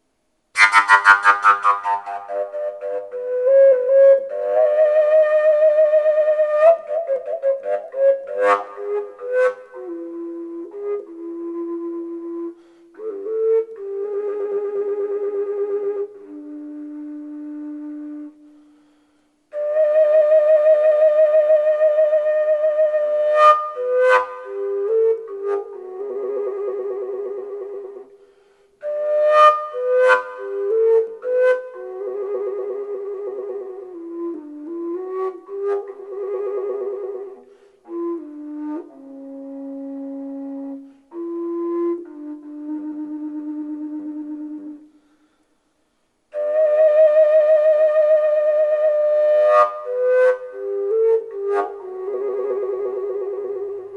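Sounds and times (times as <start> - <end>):
decorated elder wood natural fujara: 0.6 - 45.4, 46.3 - 53.9.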